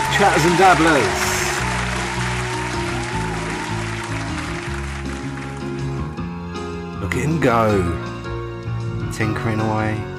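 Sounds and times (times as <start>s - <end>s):
round of applause: 0.0s - 6.1s
piano chords: 0.0s - 10.1s
speech: 0.2s - 1.3s, 7.2s - 8.0s, 9.2s - 10.1s.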